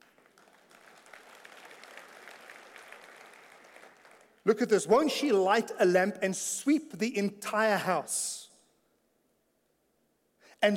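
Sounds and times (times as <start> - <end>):
audience applauding: 0.0 - 4.4
speech: 4.4 - 8.5, 10.6 - 10.7.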